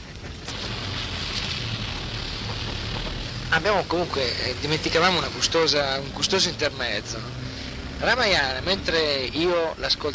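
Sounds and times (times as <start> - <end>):
rain falling: 0.0 - 10.1
speech: 3.5 - 7.4, 8.0 - 10.1.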